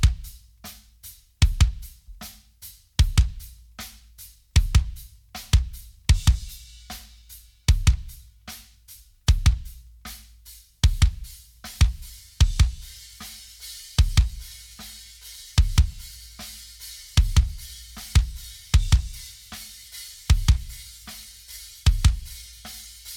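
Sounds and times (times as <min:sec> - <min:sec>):
kick drum: 0:00.0 - 0:00.4, 0:01.4 - 0:02.4, 0:03.0 - 0:03.8, 0:04.6 - 0:06.7, 0:07.7 - 0:08.4, 0:09.3 - 0:10.0, 0:10.8 - 0:13.0, 0:14.0 - 0:14.5, 0:15.6 - 0:16.1, 0:17.2 - 0:19.4, 0:20.3 - 0:20.9, 0:21.9 - 0:22.4.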